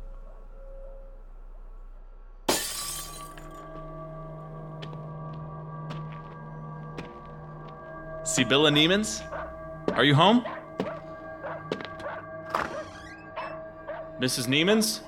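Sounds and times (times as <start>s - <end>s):
low steady hum: 0.0s - 11.5s
kitchen window glass being smashed: 2.5s - 3.6s
small glass shards tinkling down: 2.5s - 3.6s
speech: 8.3s - 9.3s, 10.0s - 10.9s, 14.2s - 15.0s.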